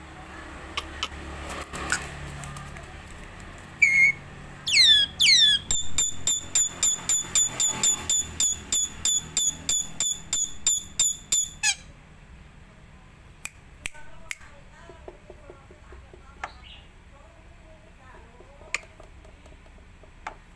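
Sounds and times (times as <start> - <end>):
black-winged myna song with trill, clicks and whistles: 3.8 - 11.9.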